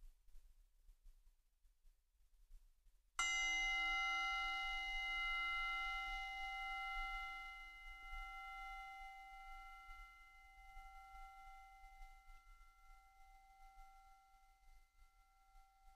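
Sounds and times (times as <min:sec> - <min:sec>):
meditation bell ringing: 0:03.2 - 0:15.9.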